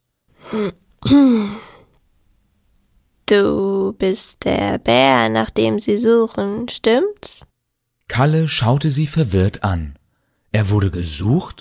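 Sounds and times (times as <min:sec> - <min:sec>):
speech: 0:00.5 - 0:01.6, 0:03.3 - 0:07.5, 0:08.1 - 0:11.5
woman clearing her throat: 0:00.5 - 0:01.6.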